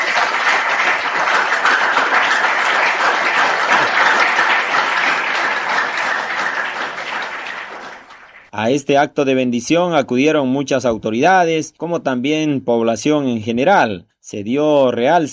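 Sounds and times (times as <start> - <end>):
audience applause: 0.0 - 8.5
speech: 8.6 - 15.3.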